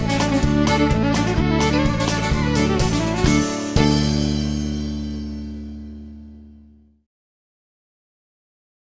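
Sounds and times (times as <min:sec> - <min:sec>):
fiddle jig: 0:00.0 - 0:06.3.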